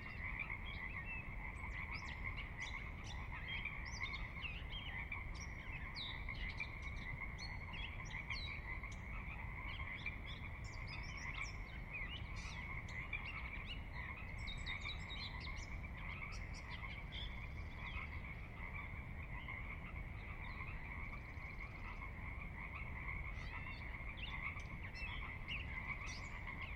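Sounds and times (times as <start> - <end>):
Pacific Chorus Frog chorus: 0.0 - 26.7.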